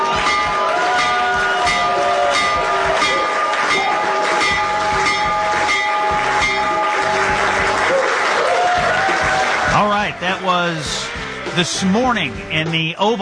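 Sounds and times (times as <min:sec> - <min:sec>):
clapping: 0:00.0 - 0:10.5
crowd cheering: 0:00.0 - 0:12.5
loud stock exchange opening electric bell ringing: 0:00.1 - 0:07.6
speech: 0:11.6 - 0:13.1.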